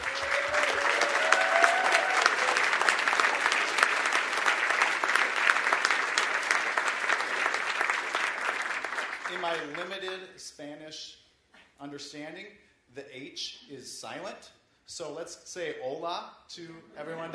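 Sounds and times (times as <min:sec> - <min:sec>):
audience applauding as a warm welcome: 0:00.0 - 0:10.1
speech: 0:09.5 - 0:11.2, 0:11.8 - 0:17.3.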